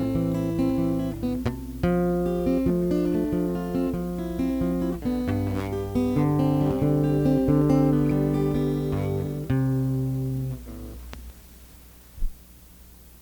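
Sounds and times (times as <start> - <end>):
acoustic fingerpicking: 0.0 - 11.6.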